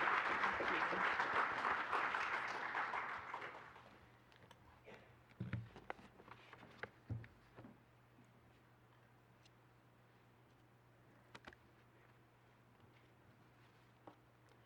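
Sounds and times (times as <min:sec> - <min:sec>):
church congregation applause welcoming a guest speaker: 0:00.0 - 0:04.0.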